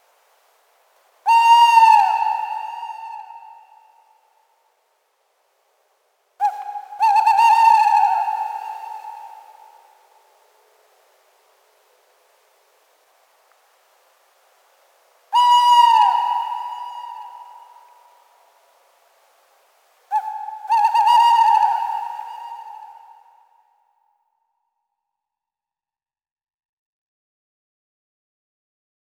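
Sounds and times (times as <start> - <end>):
male tawny owl Strix aluco calling: 1.2 - 4.2, 6.4 - 10.0, 15.3 - 18.2, 20.1 - 23.5.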